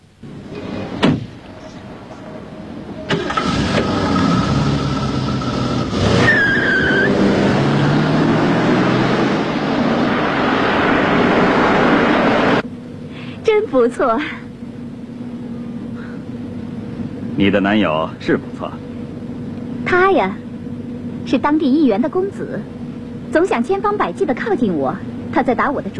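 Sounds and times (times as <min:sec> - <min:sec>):
Jaguar car engine running while pulling away: 0:00.2 - 0:25.3
car door slamming shut: 0:00.9 - 0:01.4
speech: 0:13.8 - 0:14.4, 0:17.4 - 0:18.8, 0:19.9 - 0:20.4, 0:21.3 - 0:25.9.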